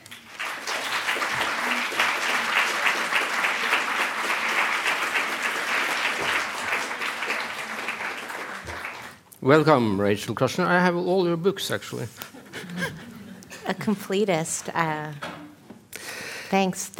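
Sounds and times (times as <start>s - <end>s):
audience applause welcoming speakers at a literature house event: 0.0s - 9.2s
speech: 9.4s - 12.2s, 13.7s - 15.3s, 16.5s - 16.9s
laughter: 12.2s - 14.0s.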